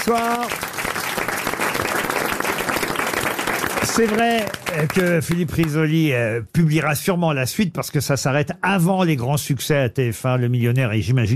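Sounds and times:
speech: 0:00.0 - 0:00.7, 0:04.0 - 0:11.3
audience applause: 0:00.0 - 0:05.9.

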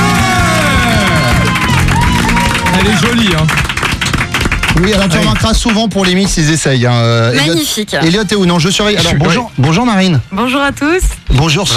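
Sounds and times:
audience cheering and whoops for the reigning Miss France: 0:00.0 - 0:03.4
audience applause for the reigning Miss France: 0:00.0 - 0:06.3
speech: 0:02.8 - 0:03.7, 0:04.7 - 0:11.7.

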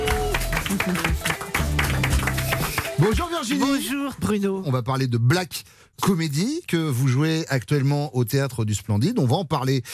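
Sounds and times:
RTL studio audience clapping: 0:00.0 - 0:04.4
speech: 0:00.7 - 0:01.3, 0:03.0 - 0:09.9.

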